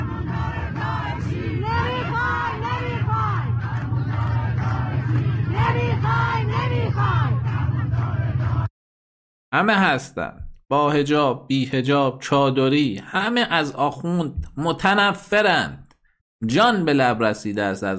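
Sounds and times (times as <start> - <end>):
large street protest crowd chanting: 0.0 - 8.7
steady low rumble: 0.0 - 8.7
speech: 9.5 - 15.8, 16.4 - 17.9.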